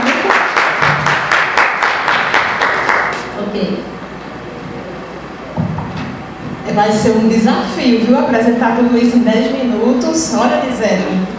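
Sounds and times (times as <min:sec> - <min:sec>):
audience applause: 0:00.0 - 0:03.2
speech: 0:06.8 - 0:11.3.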